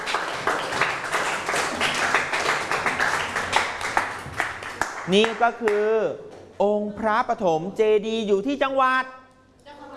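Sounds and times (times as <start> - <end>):
classroom applause for a correct answer: 0.0 - 5.8
speech: 5.1 - 9.2.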